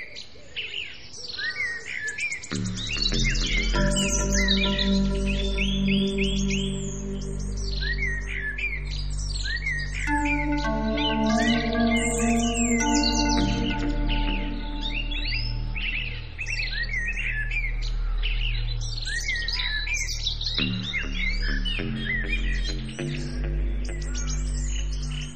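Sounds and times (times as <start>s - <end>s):
birds chirping and twittering: 0.1s - 25.3s
low drone: 3.4s - 17.7s
sustained musical tones: 3.5s - 16.7s.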